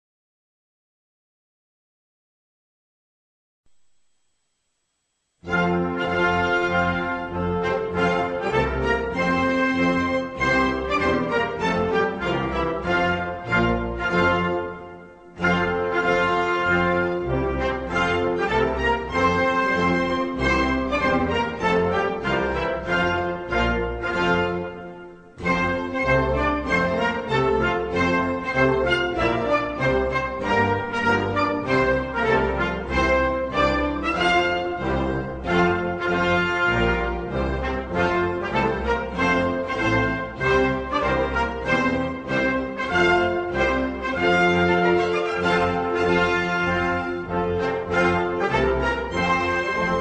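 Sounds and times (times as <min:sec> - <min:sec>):
national anthem: 0:05.4 - 0:49.9.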